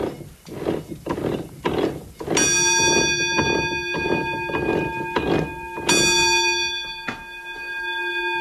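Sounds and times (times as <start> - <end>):
water wheel: 0.0 - 6.8
mill roller bell ringing: 2.2 - 8.3.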